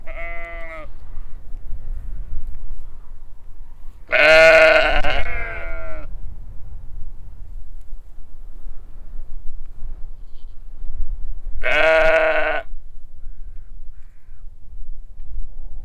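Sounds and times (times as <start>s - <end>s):
large flock of sheep bleating on a windy hill pasture: 0.0s - 0.9s, 4.1s - 6.1s, 11.6s - 12.7s.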